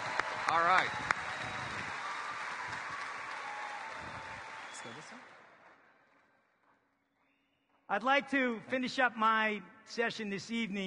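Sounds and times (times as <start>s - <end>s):
audience applause: 0.0s - 6.1s
speech: 0.5s - 1.2s, 7.9s - 10.8s.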